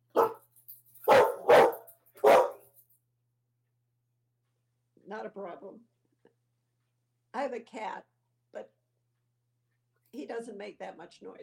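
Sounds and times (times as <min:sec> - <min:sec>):
dog barking: 0:00.1 - 0:00.4, 0:01.0 - 0:02.7
speech: 0:05.1 - 0:06.0, 0:07.4 - 0:08.8, 0:10.1 - 0:11.4.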